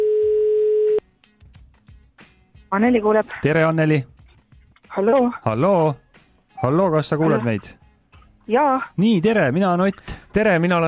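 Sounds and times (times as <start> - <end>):
telephone ringback tone: 0.0 - 1.0
speech: 2.7 - 4.2, 5.0 - 6.0, 6.6 - 7.8, 8.5 - 10.8.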